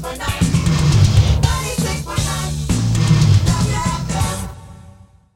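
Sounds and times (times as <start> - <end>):
radio jingle: 0.4 - 4.1.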